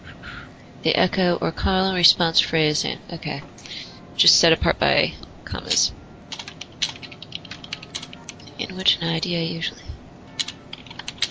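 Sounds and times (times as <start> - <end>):
speech: 0.8 - 6.0, 8.6 - 9.9
typing on a computer keyboard: 5.6 - 9.0, 10.3 - 11.2.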